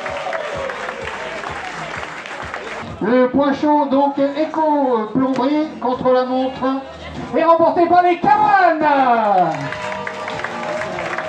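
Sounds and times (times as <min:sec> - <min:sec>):
audience applause: 0:00.0 - 0:02.9, 0:09.2 - 0:11.2
speech: 0:03.0 - 0:09.8.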